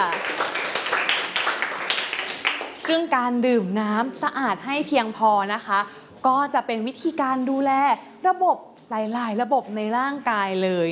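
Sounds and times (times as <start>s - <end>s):
classroom applause for a classmate: 0.0s - 2.9s
speech: 2.9s - 10.9s.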